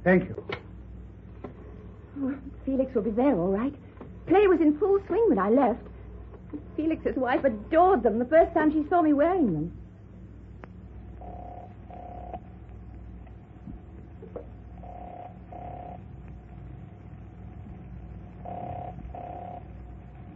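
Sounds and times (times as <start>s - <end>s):
speech: 0.0s - 0.6s, 2.2s - 5.9s, 6.5s - 9.8s
telephone ringing tone on the line: 11.2s - 12.4s, 14.8s - 16.1s, 18.4s - 19.8s.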